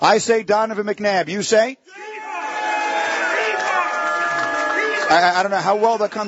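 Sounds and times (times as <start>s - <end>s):
speech: 0.0s - 2.2s, 5.1s - 6.2s
crowd booing: 1.9s - 6.2s.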